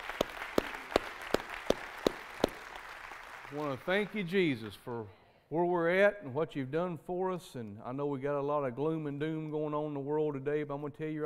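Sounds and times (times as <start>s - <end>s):
audience applause: 0.0s - 4.8s
speech: 3.5s - 11.2s.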